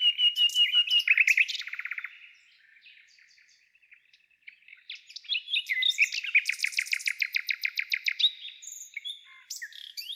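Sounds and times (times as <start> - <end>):
nightingale singing: 0.0 - 10.1.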